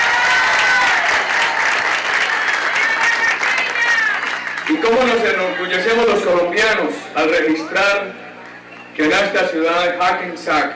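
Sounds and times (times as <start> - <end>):
audience applause: 0.0 - 6.4
speech: 4.9 - 8.2, 9.0 - 10.7.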